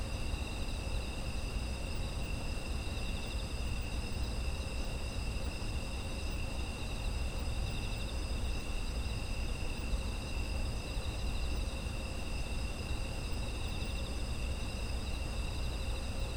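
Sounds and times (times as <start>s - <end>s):
autumn insects chirping: 0.0s - 16.3s.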